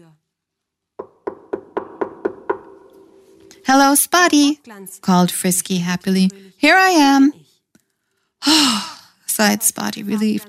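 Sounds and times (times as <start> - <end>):
desperate knocking on a wooden door: 1.0 - 3.4
speech: 3.7 - 7.4, 8.4 - 10.4.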